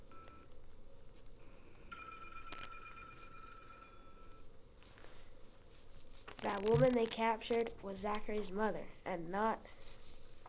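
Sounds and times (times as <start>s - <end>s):
telephone ringing with electronic trill: 0.0s - 0.5s, 1.9s - 4.5s
speech: 6.4s - 9.9s.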